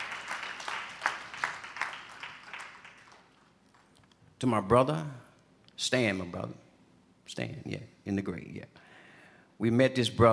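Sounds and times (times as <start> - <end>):
audience hand clapping: 0.0 - 4.0
speech: 4.4 - 5.2, 5.8 - 6.6, 7.3 - 8.8, 9.6 - 10.3.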